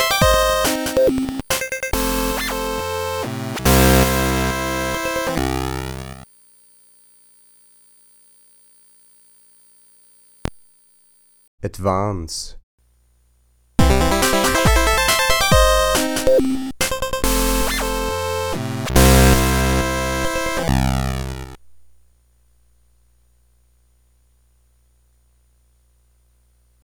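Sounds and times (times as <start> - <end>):
Game Boy nanoloop chiptune music: 0.0 - 6.2, 13.8 - 21.6.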